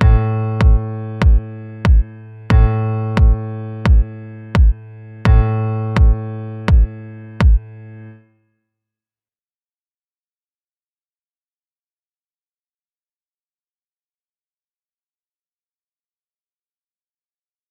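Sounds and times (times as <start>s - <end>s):
abstract piano: 0.0s - 8.2s.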